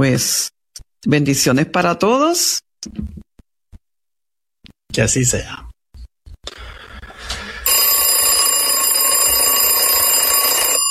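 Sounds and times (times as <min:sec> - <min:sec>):
speech: 0:00.0 - 0:03.2, 0:04.9 - 0:05.7
alarm clock ringing: 0:07.6 - 0:10.9.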